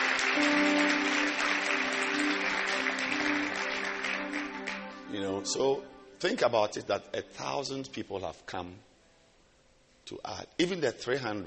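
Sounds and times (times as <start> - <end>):
audience clapping hands: 0.0 - 5.3
speech: 0.4 - 1.5, 5.2 - 8.9, 10.1 - 11.4.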